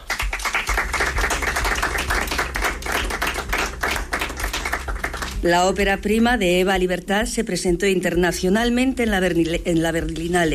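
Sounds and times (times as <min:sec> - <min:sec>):
applause at a nomination announcement: 0:00.0 - 0:06.0
speech: 0:05.4 - 0:10.5.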